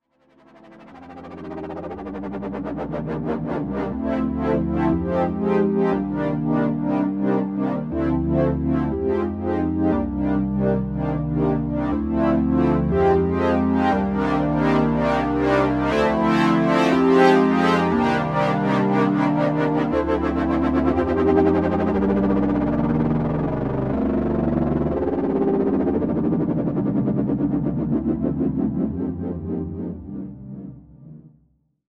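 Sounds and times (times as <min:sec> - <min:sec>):
Jupiter 8 synthesizer: 0:00.2 - 0:31.4.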